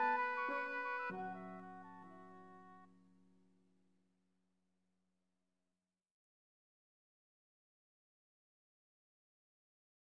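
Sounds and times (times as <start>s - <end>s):
flute: 0.0s - 2.9s
musical accompaniment: 0.0s - 2.9s.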